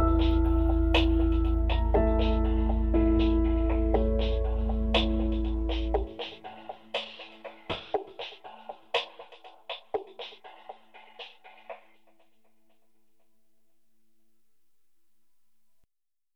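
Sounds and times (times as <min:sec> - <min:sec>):
piano beat variation: 0:00.0 - 0:11.9.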